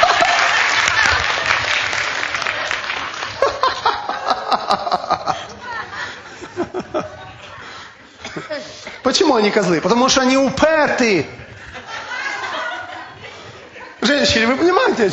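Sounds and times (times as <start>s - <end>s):
crowd applause: 0.0s - 7.0s
audience chuckling and laughing: 0.0s - 15.1s
speech: 9.1s - 11.5s, 14.2s - 15.1s.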